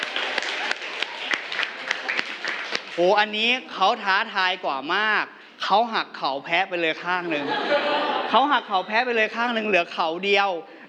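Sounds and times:
children applauding a classmate in a school class: 0.0s - 3.2s
speech: 3.0s - 10.8s
laughter: 7.2s - 9.2s.

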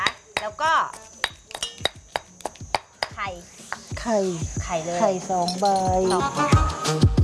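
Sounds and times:
pounding curry paste in a mortar: 0.0s - 3.9s
speech: 3.3s - 7.1s.

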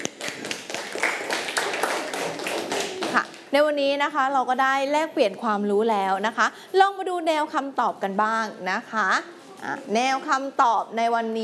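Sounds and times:
classroom students clapping: 0.0s - 3.5s
speech: 3.1s - 11.4s.

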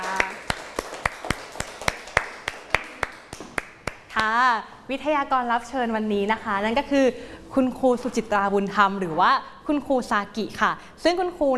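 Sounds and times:
hands clapping for the guest speaker: 0.0s - 4.3s
speech: 4.2s - 11.5s.

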